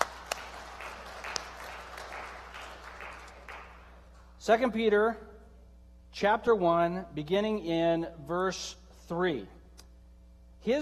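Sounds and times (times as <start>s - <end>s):
audience clapping: 0.0s - 4.3s
speech: 4.4s - 5.3s, 6.2s - 9.6s, 10.6s - 10.8s.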